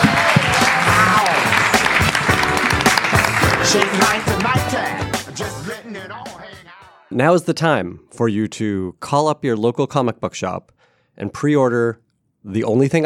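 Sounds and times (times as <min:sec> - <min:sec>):
audience round of applause: 0:00.0 - 0:05.8
speech: 0:03.7 - 0:04.6, 0:07.1 - 0:13.0.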